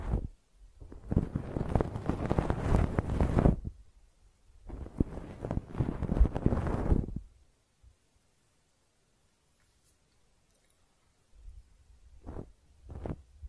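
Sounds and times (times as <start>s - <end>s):
ear cleaning scratching and rustling: 0.0s - 3.7s, 4.7s - 7.2s, 12.2s - 13.2s.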